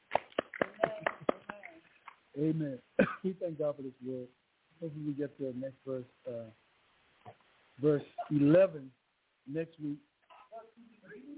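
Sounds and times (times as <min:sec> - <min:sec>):
audience clapping hands: 0:00.0 - 0:01.8
speech: 0:02.4 - 0:06.6, 0:07.3 - 0:10.1.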